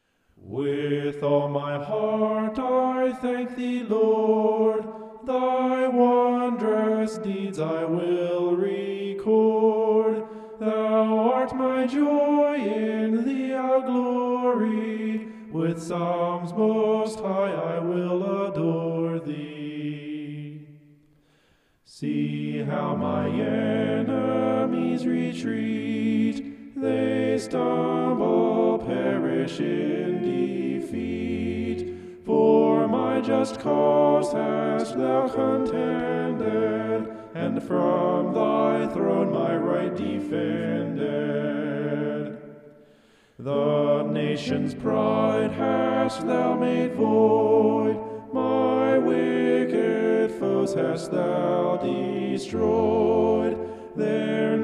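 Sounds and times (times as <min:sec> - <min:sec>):
homophonic vocals: 0:00.4 - 0:20.8, 0:21.9 - 0:42.8, 0:43.4 - 0:54.6.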